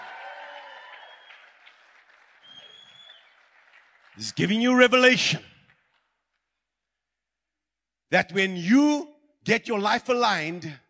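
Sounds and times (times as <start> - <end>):
audience clapping hands: 0.0 - 6.5
speech: 4.2 - 5.5, 8.1 - 10.8.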